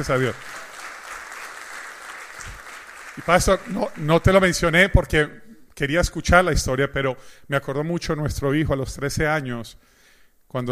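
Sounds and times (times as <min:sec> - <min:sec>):
speech: 0:00.0 - 0:00.5, 0:03.2 - 0:09.9
audience applause: 0:00.0 - 0:04.4.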